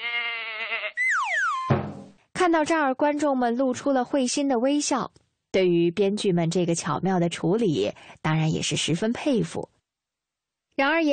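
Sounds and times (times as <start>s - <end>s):
goat bleating: 0.0s - 1.0s
speech: 2.4s - 9.7s, 10.8s - 11.1s.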